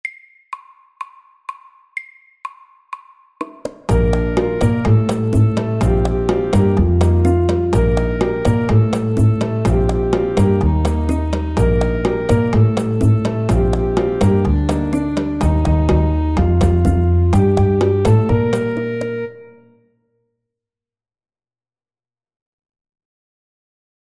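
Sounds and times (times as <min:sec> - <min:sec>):
fast spicy salsa music: 0:03.5 - 0:19.3.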